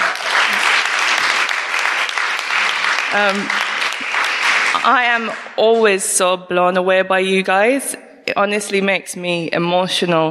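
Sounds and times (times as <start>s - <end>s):
audience applause: 0.0s - 5.6s
speech: 3.1s - 3.6s, 4.8s - 10.2s.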